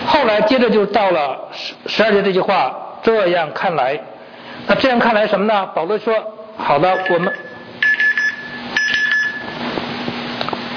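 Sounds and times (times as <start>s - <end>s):
speech: 0.2s - 7.4s
mobile phone alarm going off during a church sermon: 6.9s - 9.6s.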